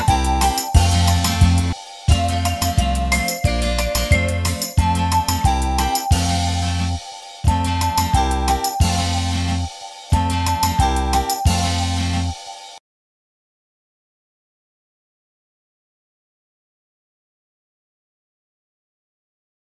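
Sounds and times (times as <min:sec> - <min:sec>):
karaoke singing: 0:00.0 - 0:12.4.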